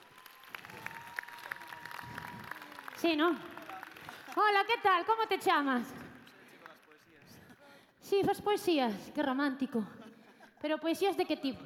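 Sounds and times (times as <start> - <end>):
audience applause: 0.0 - 4.7
speech: 3.0 - 3.5, 4.4 - 6.0, 8.1 - 10.0, 10.6 - 11.6.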